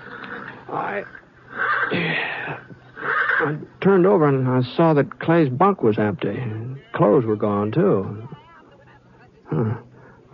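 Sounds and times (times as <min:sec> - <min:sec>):
horse neighing in a corral: 0:00.0 - 0:03.7
speech: 0:00.7 - 0:02.6, 0:03.4 - 0:08.3, 0:09.5 - 0:09.8.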